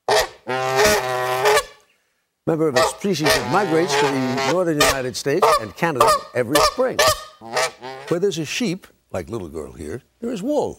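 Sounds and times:
Canada goose honking: 0.1 - 1.8, 2.7 - 8.2
speech: 2.5 - 10.7.

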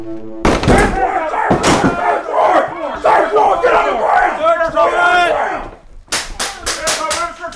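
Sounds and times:
sharp bangs: 0.0 - 2.6
SWAT team door crash: 0.0 - 2.8
SWAT team men shouting: 0.6 - 7.1.

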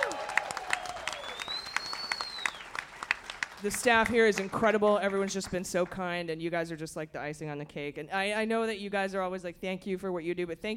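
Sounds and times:
crowd at Lincoln Hall clapping: 0.0 - 6.0
sliding whistle: 0.6 - 2.8
speech: 3.6 - 10.7.

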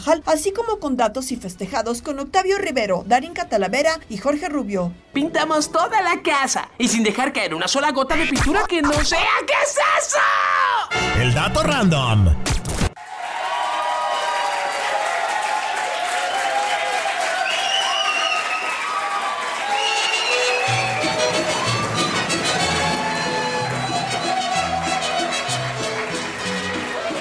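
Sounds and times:
speech: 0.0 - 12.6
cheers and shouts: 13.0 - 27.2
large crowd applauding: 13.0 - 27.2.

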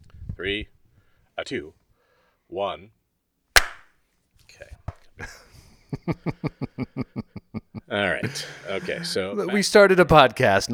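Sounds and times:
speech: 0.4 - 0.8, 1.4 - 1.8, 2.5 - 3.0, 4.6 - 5.4, 6.1 - 10.7
single hand clap for sync: 3.6 - 3.9
laughter: 5.2 - 9.4.

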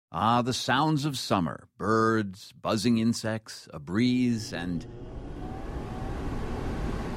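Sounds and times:
speech: 0.1 - 5.2
air conditioning unit blowing: 4.2 - 7.1.

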